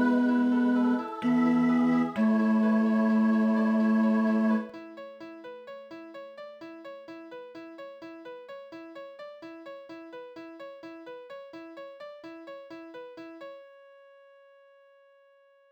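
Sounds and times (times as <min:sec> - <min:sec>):
tenor singing: 0:00.0 - 0:04.8.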